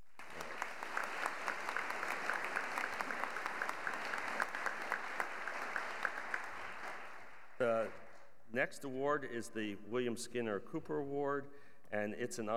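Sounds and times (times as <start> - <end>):
audience applause at an award ceremony for a scientific society: 0.0 - 8.2
speech: 7.6 - 12.5.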